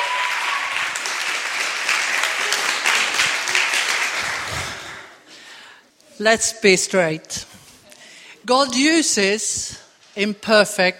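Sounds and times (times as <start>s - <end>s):
audience clapping welcoming a returning speaker in London: 0.0s - 5.2s
speech: 6.2s - 7.5s, 8.5s - 10.9s.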